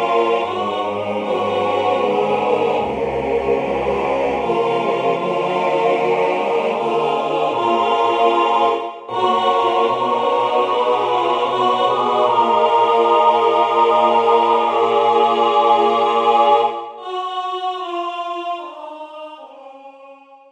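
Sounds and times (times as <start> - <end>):
MIDI SSAATB choir lead: 0.0 - 20.5.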